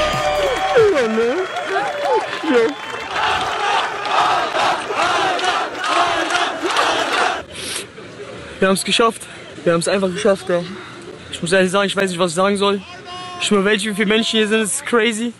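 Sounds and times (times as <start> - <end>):
fans whooping and shouting at a runner's finish in Los Angeles: 0.0 - 5.4
fans clapping at a runner's finish in Los Angeles: 0.0 - 7.4
crowd noise: 0.0 - 15.3
speech: 1.0 - 3.0, 8.6 - 15.3.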